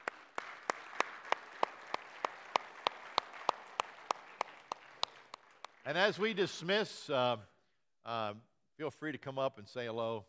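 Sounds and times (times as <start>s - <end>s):
sharp evenly spaced claps: 0.0s - 6.1s
audience applause: 0.0s - 6.3s
speech: 5.9s - 10.2s.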